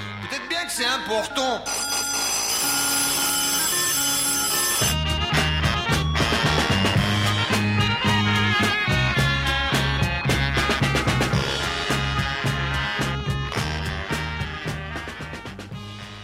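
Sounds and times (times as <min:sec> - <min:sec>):
band playing: 0:00.0 - 0:16.2
telephone ringing in a song: 0:01.2 - 0:05.1.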